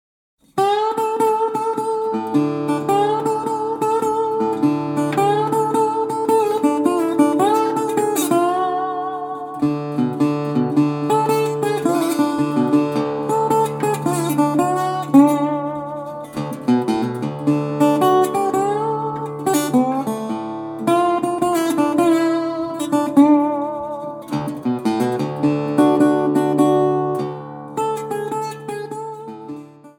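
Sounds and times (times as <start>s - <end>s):
slide guitar: 0.6s - 29.9s.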